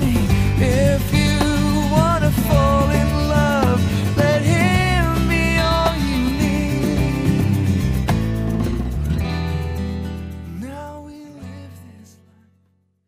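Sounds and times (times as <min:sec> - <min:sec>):
percussion track: 0:00.0 - 0:11.5.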